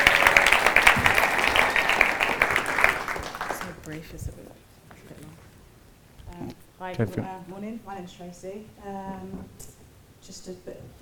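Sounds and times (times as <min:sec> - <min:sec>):
audience applause: 0:00.0 - 0:04.0
speech: 0:04.0 - 0:04.5, 0:06.8 - 0:11.0.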